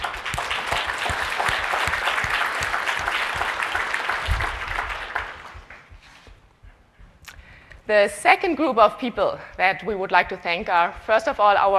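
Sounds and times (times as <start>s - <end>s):
audience applause: 0.0s - 5.9s
speech: 7.9s - 11.7s.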